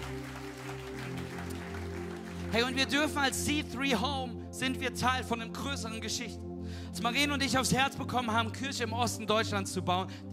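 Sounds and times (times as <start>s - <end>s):
audience applause: 0.0s - 2.8s
speech: 2.5s - 10.3s.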